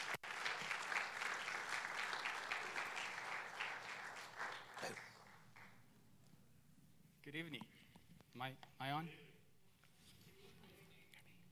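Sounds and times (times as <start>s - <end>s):
church congregation applause welcoming a pastor during an evening service: 0.0s - 5.8s
speech: 4.9s - 5.1s, 7.2s - 7.8s, 8.4s - 9.3s.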